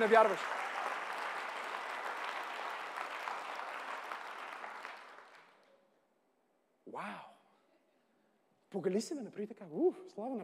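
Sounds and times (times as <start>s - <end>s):
speech: 0.0s - 0.6s, 8.7s - 10.4s
audience applause: 0.0s - 5.6s.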